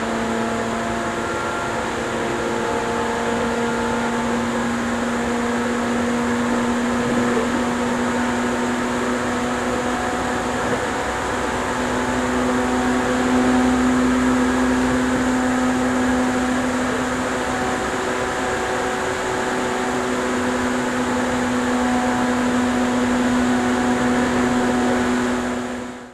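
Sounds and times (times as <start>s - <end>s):
Seibu 101N electric train with externally fanned motor car: 0.0s - 26.1s.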